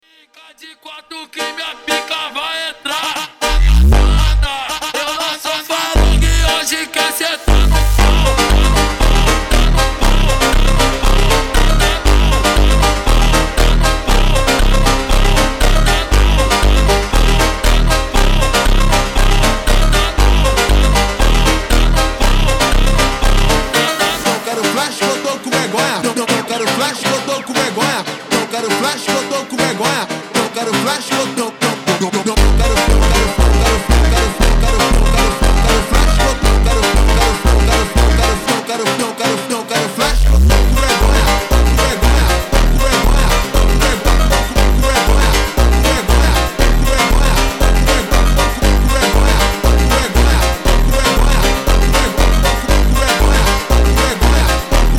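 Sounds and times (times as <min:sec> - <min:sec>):
ultra slowed phonk montagem music: 0:01.2 - 0:54.9.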